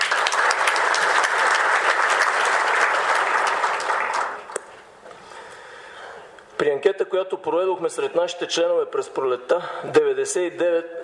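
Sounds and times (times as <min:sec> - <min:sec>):
audience applause: 0:00.0 - 0:04.6
speech: 0:06.6 - 0:11.0.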